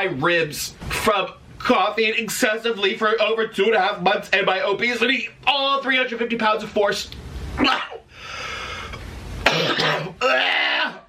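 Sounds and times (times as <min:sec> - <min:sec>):
speech: 0:00.0 - 0:07.9, 0:09.8 - 0:10.6
CPAP machine running over nose: 0:08.1 - 0:09.2.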